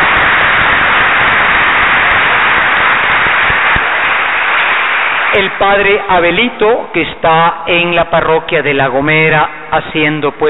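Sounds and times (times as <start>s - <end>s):
applause: 0.0s - 6.8s
speech: 5.4s - 10.4s.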